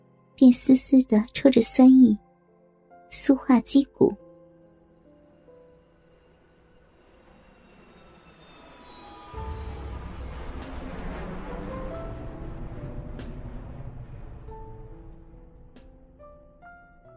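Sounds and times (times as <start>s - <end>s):
speech: 0.4s - 2.2s, 3.1s - 4.2s
airplane taking off with a whoosh: 6.6s - 16.9s.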